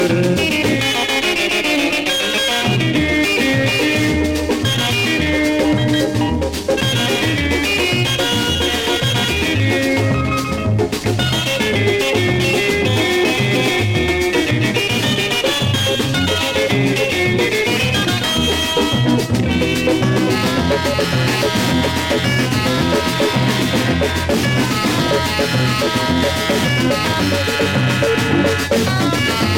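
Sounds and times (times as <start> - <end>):
guitar: 0.0 - 29.5.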